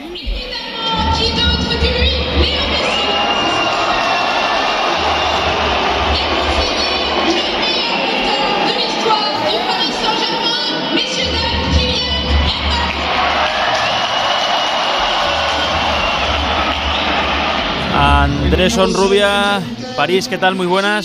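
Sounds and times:
stadium crowd roaring in Paris: 0.0s - 20.8s
speech: 18.6s - 21.0s.

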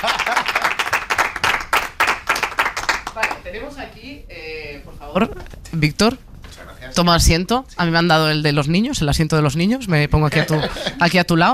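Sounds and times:
audience applause: 0.0s - 3.4s
speech: 3.5s - 6.3s, 6.9s - 11.5s.

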